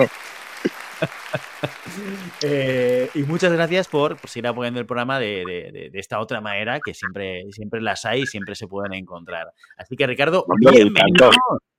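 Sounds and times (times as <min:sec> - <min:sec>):
speech: 0:00.0 - 0:00.3, 0:01.0 - 0:11.7
laughter: 0:00.0 - 0:04.6, 0:06.8 - 0:07.3, 0:08.1 - 0:08.6, 0:10.5 - 0:11.4
applause: 0:00.0 - 0:04.8.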